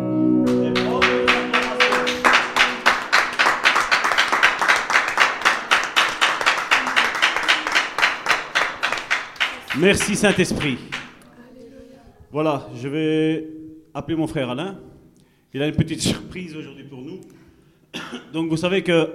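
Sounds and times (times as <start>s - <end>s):
audience applause: 0.5s - 11.2s
speech: 9.8s - 10.9s, 12.3s - 14.9s, 15.5s - 17.4s, 18.1s - 19.1s.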